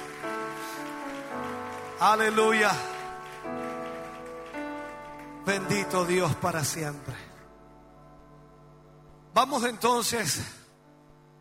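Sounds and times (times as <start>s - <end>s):
audience applause: 0.0s - 6.5s
sustained keyboard chords: 0.0s - 11.3s
speech: 2.0s - 3.6s, 5.5s - 7.2s, 9.4s - 10.6s.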